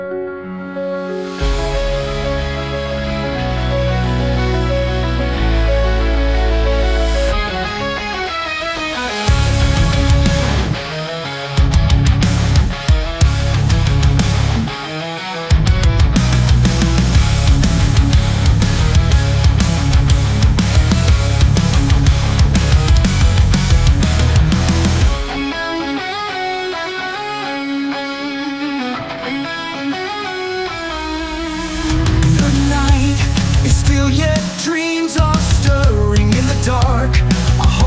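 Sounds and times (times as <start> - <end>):
heavy metal music: 0.4 - 37.8.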